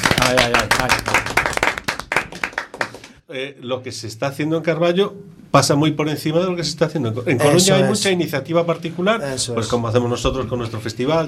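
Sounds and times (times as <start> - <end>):
audience applause: 0.0 - 3.2
speech: 0.3 - 1.2, 3.3 - 11.2.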